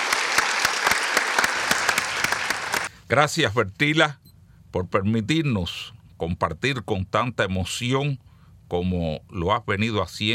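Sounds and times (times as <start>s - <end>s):
audience clapping: 0.0s - 2.9s
speech: 3.1s - 10.3s.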